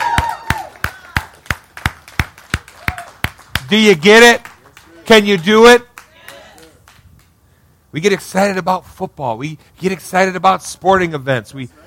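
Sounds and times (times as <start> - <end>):
audience hand clapping: 0.0 - 7.4
speech: 3.7 - 4.5, 5.1 - 5.9, 7.9 - 11.8.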